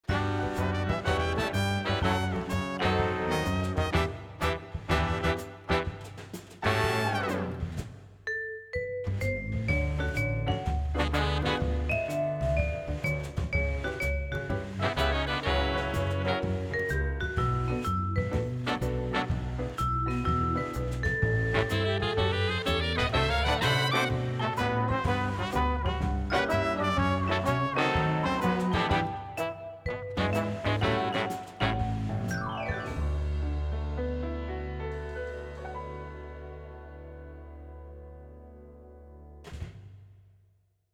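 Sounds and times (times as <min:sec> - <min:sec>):
background music: 0:00.0 - 0:39.5.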